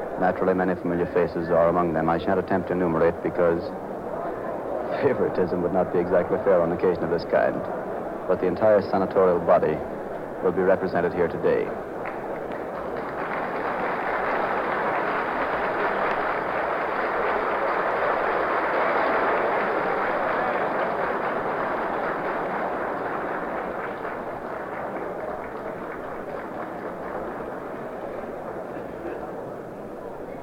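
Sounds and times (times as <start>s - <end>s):
speech: 0.2s - 3.9s, 4.9s - 11.8s
burst of applause for the single woman member of the Senate: 12.0s - 29.4s.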